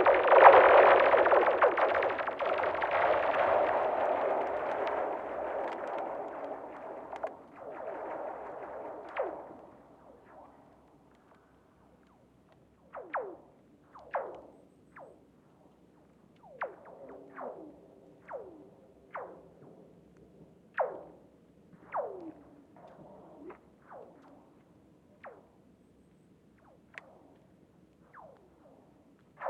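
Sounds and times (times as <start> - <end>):
lake soundscape: 0.0 - 10.0.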